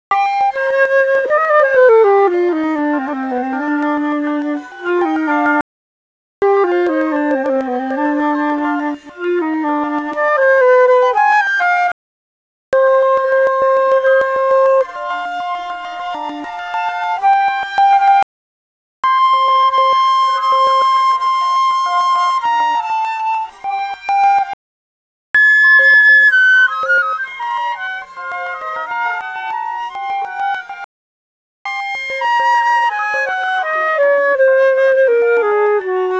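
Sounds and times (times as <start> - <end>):
flute melodies: 0.1 - 5.6, 6.4 - 12.0, 12.8 - 18.2, 19.0 - 24.6, 25.4 - 30.9, 31.7 - 36.1.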